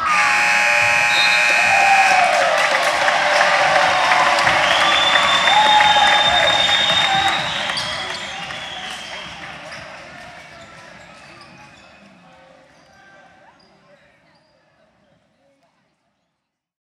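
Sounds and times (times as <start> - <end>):
whistle: 0.1 - 9.3
NBA live crowd applauding: 0.1 - 10.4.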